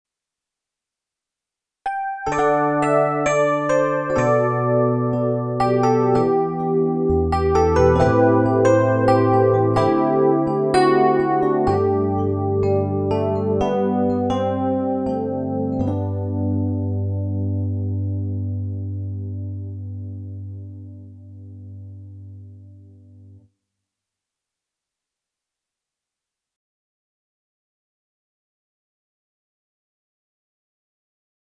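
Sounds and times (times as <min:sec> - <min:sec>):
ballad music: 0:01.9 - 0:23.4.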